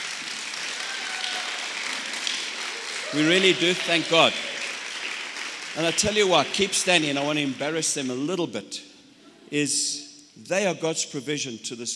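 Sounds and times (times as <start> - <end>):
audience applause: 0.0 - 8.0
speech: 3.1 - 4.5, 5.8 - 8.9, 9.5 - 11.9.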